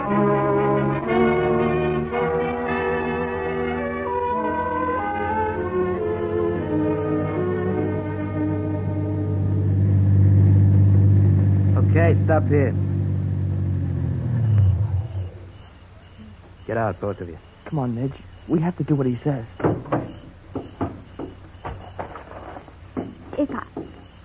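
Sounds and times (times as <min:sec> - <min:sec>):
car engine driving and revving: 0:00.0 - 0:15.7
speech: 0:12.3 - 0:12.8, 0:16.7 - 0:19.9.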